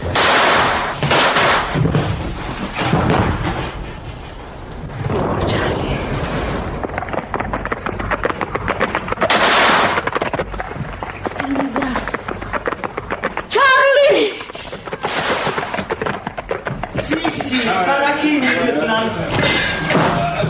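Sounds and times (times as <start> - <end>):
gunshots in a dramatized action scene: 0.0 - 2.0, 8.7 - 10.7, 14.9 - 16.1
noisy commotion: 0.0 - 20.4.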